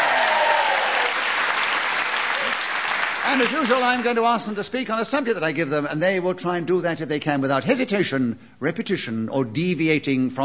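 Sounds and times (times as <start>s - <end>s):
studio audience applause welcoming comedy panel game panelists: 0.0s - 4.4s
speech: 3.4s - 10.4s.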